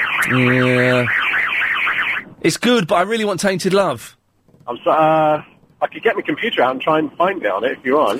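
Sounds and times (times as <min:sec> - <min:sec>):
voice imitating a police siren: 0:00.2 - 0:01.4
speech: 0:00.3 - 0:01.2, 0:02.4 - 0:08.1.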